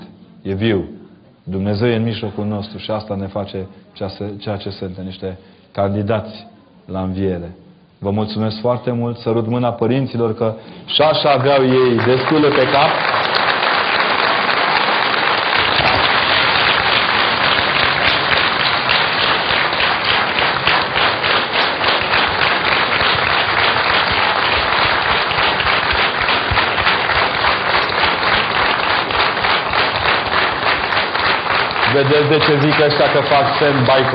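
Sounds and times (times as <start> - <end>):
speech: 0.4 - 13.2, 32.0 - 34.1
audience applause in church: 11.2 - 34.1.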